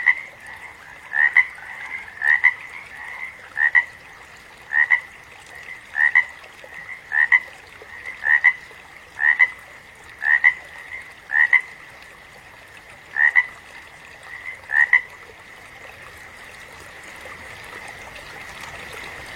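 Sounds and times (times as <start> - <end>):
frog double-pulsed croaks: 0.0 - 4.1, 4.7 - 11.9, 13.1 - 15.2.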